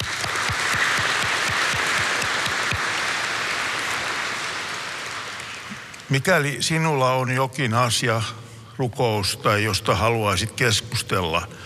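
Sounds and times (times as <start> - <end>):
church audience applause: 0.0 - 6.3
speech: 6.1 - 11.6.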